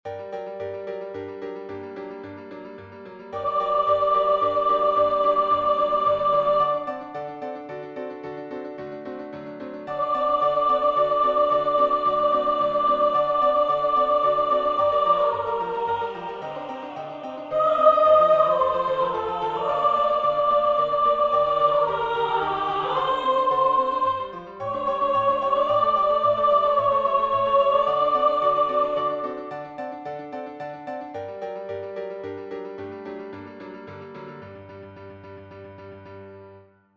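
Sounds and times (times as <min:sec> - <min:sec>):
soprano singing: 0:03.4 - 0:07.6, 0:09.9 - 0:30.0.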